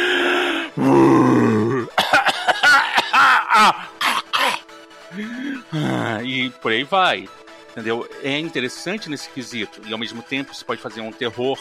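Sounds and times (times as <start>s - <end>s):
voice imitating the big bad wolf wheezing in an asthma attack: 0.0s - 6.2s
speech: 0.8s - 1.6s, 3.6s - 3.9s, 6.3s - 11.5s
voice imitating an asthmatic wolf coughing and gasping: 1.4s - 4.6s.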